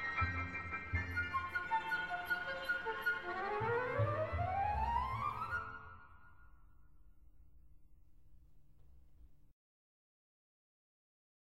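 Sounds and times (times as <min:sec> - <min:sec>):
flute: 0:00.0 - 0:06.8.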